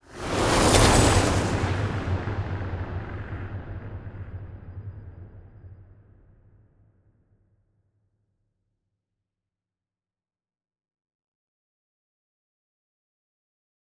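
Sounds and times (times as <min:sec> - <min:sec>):
battleship moving: 0:00.0 - 0:02.2.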